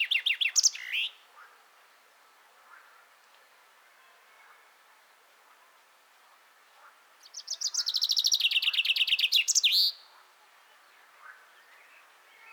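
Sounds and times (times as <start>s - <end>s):
common chaffinch song: 0.0s - 1.2s, 7.2s - 10.0s.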